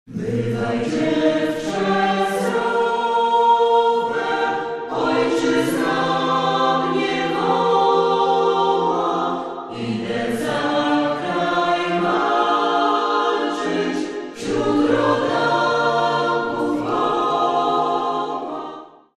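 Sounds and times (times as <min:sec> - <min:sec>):
a cappella singing: 0:00.1 - 0:19.1.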